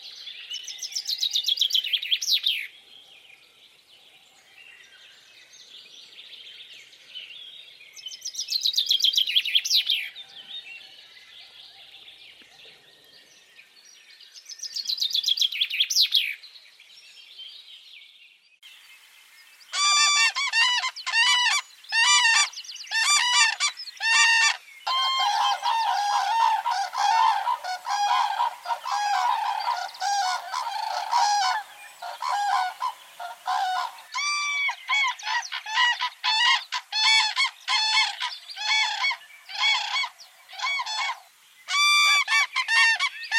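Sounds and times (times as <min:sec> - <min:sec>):
birds singing: 0:00.0 - 0:43.3
repeated goose-like honking calls: 0:23.1 - 0:34.0.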